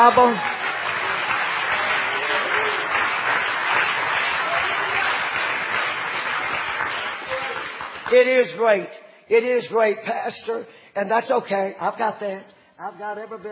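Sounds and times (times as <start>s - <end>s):
speech: 0.0s - 0.6s, 8.1s - 13.4s
audience clapping hands: 0.0s - 8.6s.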